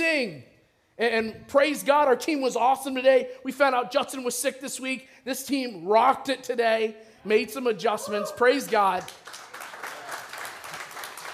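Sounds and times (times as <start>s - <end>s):
speech: 0.2s - 9.4s
audience applause: 8.4s - 11.3s.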